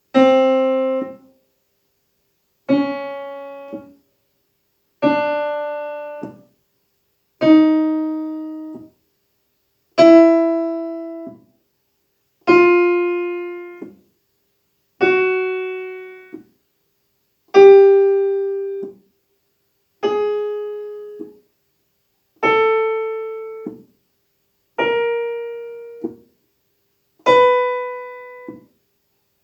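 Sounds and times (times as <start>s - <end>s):
piano: 0.0s - 1.3s, 2.7s - 4.0s, 5.0s - 6.4s, 7.4s - 8.9s, 10.0s - 11.4s, 12.5s - 14.0s, 15.0s - 16.4s, 17.6s - 19.0s, 20.0s - 21.3s, 22.4s - 23.9s, 24.8s - 26.2s, 27.2s - 28.7s.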